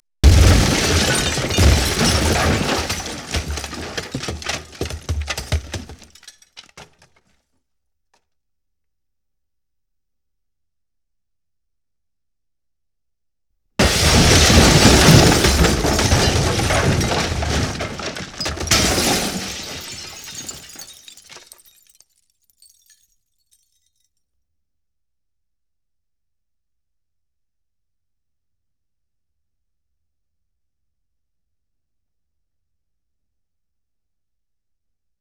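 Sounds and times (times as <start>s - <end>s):
explosion: 0.2s - 4.5s, 13.8s - 19.8s.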